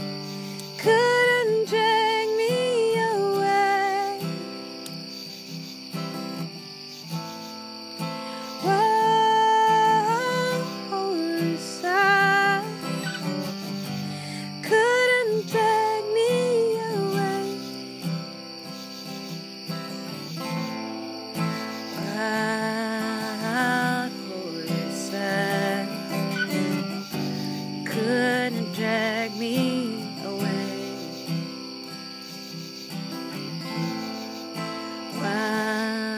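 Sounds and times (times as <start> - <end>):
crickets chirping: 0.0 - 36.1.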